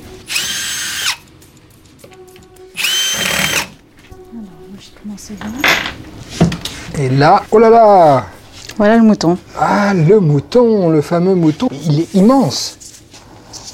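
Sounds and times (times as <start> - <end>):
power drill whirring while a panel is unscrewed: 0.2 - 1.2, 2.8 - 3.8
speech: 4.8 - 12.8.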